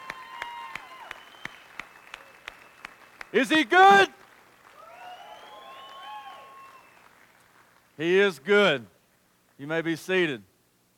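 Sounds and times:
audience clapping: 0.0s - 8.4s
speech: 3.3s - 4.2s, 8.0s - 8.9s, 9.6s - 10.5s.

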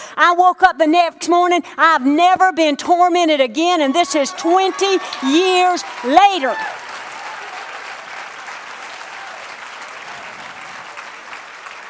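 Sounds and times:
speech: 0.2s - 6.8s
audience clapping: 3.9s - 11.8s.

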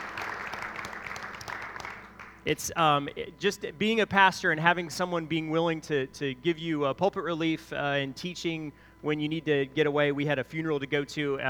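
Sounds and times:
audience applause: 0.0s - 2.5s
speech: 2.4s - 11.4s.

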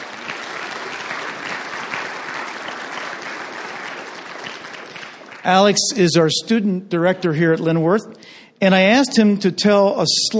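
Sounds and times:
round of applause: 0.0s - 5.9s
speech: 5.4s - 10.3s.

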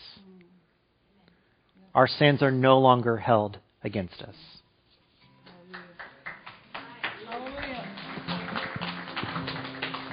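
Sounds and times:
speech: 2.0s - 4.5s
audience applause: 5.7s - 10.1s.

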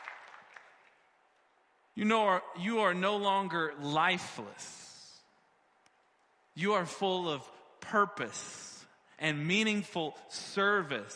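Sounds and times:
audience clapping: 0.0s - 1.2s
speech: 2.0s - 4.8s, 6.6s - 11.1s.

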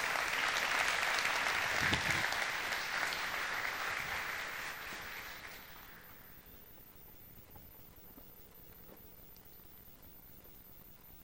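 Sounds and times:
audience applause welcoming a guest: 0.0s - 6.4s.

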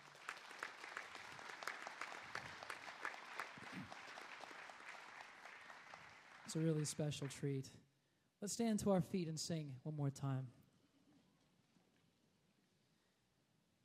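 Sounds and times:
audience applause: 0.0s - 7.6s
speech: 6.5s - 10.6s.

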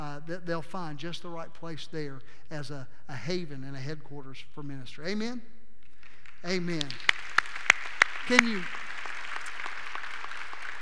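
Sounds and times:
speech: 0.3s - 5.6s, 6.4s - 7.4s, 8.3s - 8.9s
audience applause: 6.7s - 10.7s.

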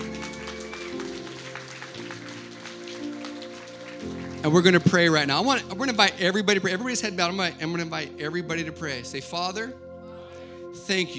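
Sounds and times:
crowd clapping: 0.0s - 5.8s
sustained keyboard or organ chords: 0.0s - 11.1s
speech: 4.4s - 9.8s, 10.9s - 11.1s.

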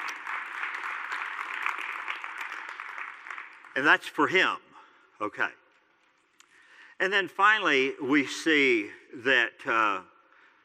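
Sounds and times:
audience clapping: 0.0s - 4.4s
speech: 3.8s - 4.6s, 5.2s - 5.6s, 7.0s - 10.1s.

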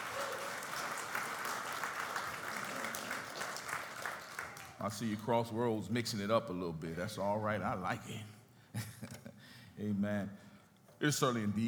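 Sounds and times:
audience applause: 0.0s - 4.8s
speech: 4.8s - 8.4s, 9.8s - 10.4s, 11.0s - 11.6s.

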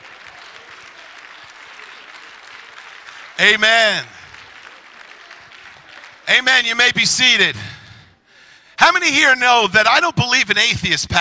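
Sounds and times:
audience applause and clapping: 0.0s - 7.5s
speech: 3.4s - 4.2s, 6.3s - 7.8s, 8.8s - 11.2s.

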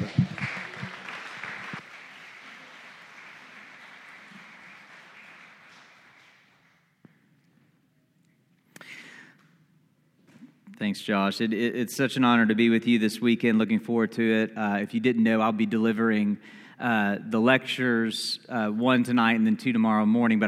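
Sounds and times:
audience applause: 0.0s - 6.8s
speech: 10.8s - 20.4s.

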